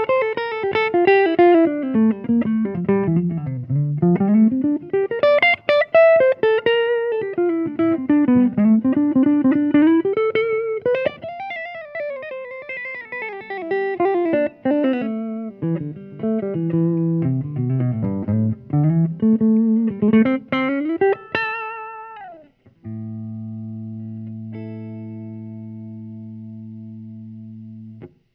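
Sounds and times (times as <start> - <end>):
improvised lead melody: 0.0 - 28.1.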